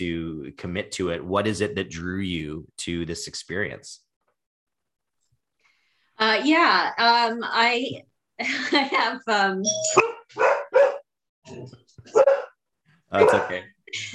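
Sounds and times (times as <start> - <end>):
speech: 0.0 - 4.0, 6.2 - 10.6, 11.5 - 12.4, 13.1 - 14.1
dog barking: 10.0 - 11.1, 12.0 - 12.6, 13.2 - 13.7.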